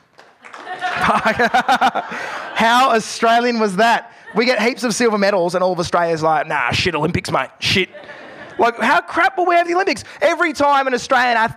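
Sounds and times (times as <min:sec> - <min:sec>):
audience applause: 0:00.0 - 0:02.4
laughter: 0:00.4 - 0:05.2, 0:07.6 - 0:09.7
speech: 0:01.1 - 0:11.5.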